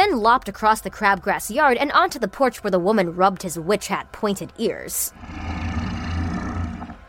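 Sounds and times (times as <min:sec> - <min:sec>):
speech: 0:00.1 - 0:05.7
large dog bellowing grunts of pleasure: 0:05.1 - 0:07.0.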